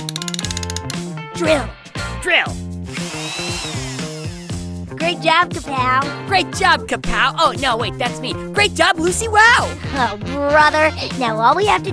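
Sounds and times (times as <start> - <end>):
wrench ratcheting: 0.0 - 1.0
speech: 1.4 - 2.6, 3.4 - 4.0, 5.0 - 11.9.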